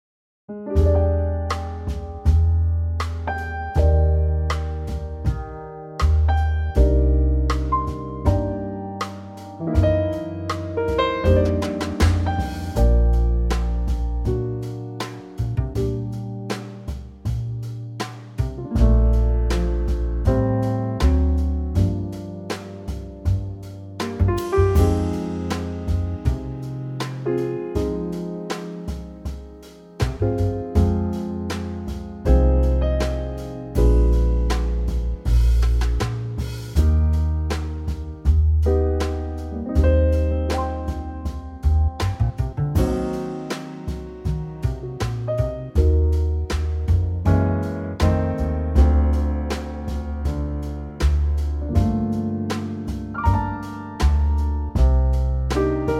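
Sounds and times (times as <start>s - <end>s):
B-flat trio backing track for male vocals: 0.6s - 55.9s.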